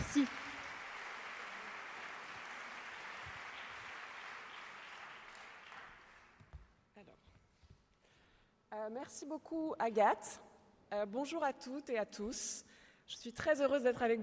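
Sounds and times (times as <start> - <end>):
audience applause: 0.0 - 6.4
speech: 8.7 - 14.2.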